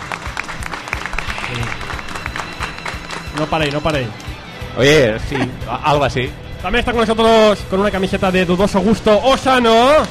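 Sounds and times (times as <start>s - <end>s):
audience applause: 0.0s - 4.0s
speech: 3.4s - 10.1s.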